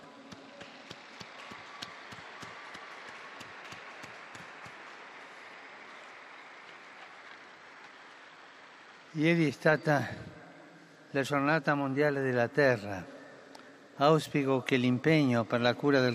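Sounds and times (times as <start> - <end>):
crowd applause: 0.0 - 9.5
speech: 9.2 - 10.3, 11.1 - 13.2, 14.0 - 16.1.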